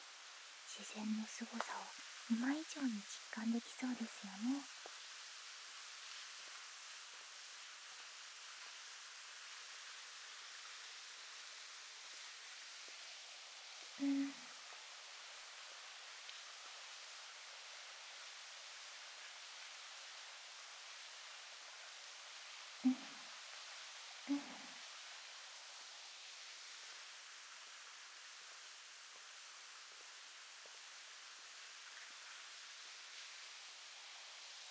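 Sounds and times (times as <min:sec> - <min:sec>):
waterfall: 0:00.0 - 0:34.6
speech: 0:00.8 - 0:04.9.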